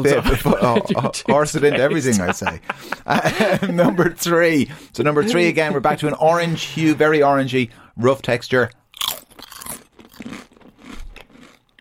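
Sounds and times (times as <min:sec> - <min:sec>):
laughter: 0:00.0 - 0:07.0
speech: 0:00.0 - 0:09.2
crunching a tortilla chip being bitten and chewed: 0:09.0 - 0:11.7.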